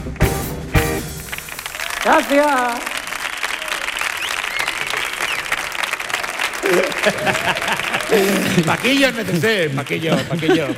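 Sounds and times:
audience applause: 0.0s - 10.7s
speech: 2.0s - 2.9s, 6.7s - 10.7s
laughter: 6.3s - 10.7s.

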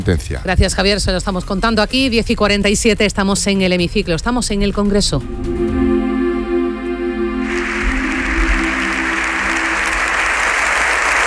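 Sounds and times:
speech: 0.0s - 5.4s
sustained tonal chord: 5.2s - 11.2s
applause of deputies and senators: 7.1s - 11.2s.

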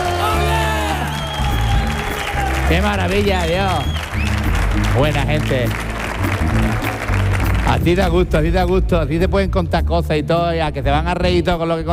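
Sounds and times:
studio audience from Cañada Rosal cheering and applauding: 0.0s - 8.4s
speech: 2.7s - 4.3s, 5.0s - 5.9s, 7.7s - 11.9s.

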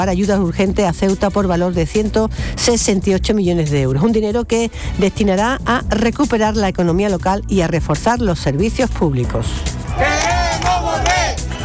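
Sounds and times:
speech: 0.0s - 11.4s
crowd protesting and chanting in the streets of Ceuta at night: 9.8s - 11.6s.

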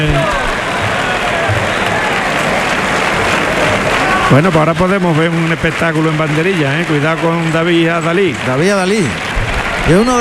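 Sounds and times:
bullring crowd applauding the picador: 0.0s - 10.1s
low murmur of voices: 0.0s - 10.1s
speech: 4.3s - 10.1s.

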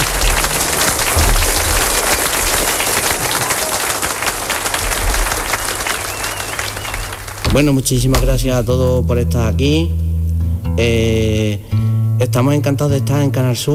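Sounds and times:
audience applause: 0.0s - 7.8s
speech: 7.6s - 10.0s, 10.8s - 13.7s.

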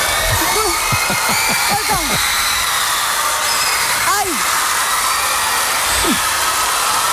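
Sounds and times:
laughter: 0.0s - 2.6s, 5.9s - 6.3s
shrill screaming: 0.0s - 7.1s
voice exclaiming: 0.4s - 2.2s.

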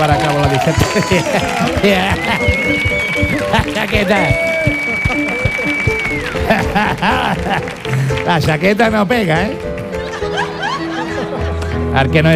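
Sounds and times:
speech: 0.0s - 5.4s, 6.8s - 9.7s, 11.9s - 12.3s
laughter: 0.0s - 8.7s, 9.8s - 12.2s
audience applause: 0.0s - 11.8s.

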